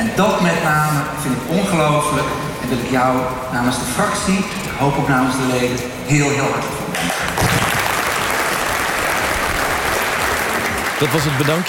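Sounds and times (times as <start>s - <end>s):
speech: 0.1s - 7.4s, 11.0s - 11.6s
crowd applauding farewell to a departing political party chair: 6.9s - 11.6s.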